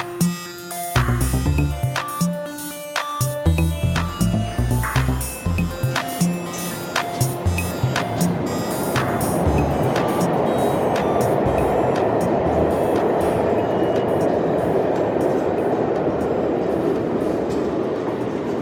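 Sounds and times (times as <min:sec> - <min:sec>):
subway train wheels rumbling on track: 0:00.0 - 0:18.6.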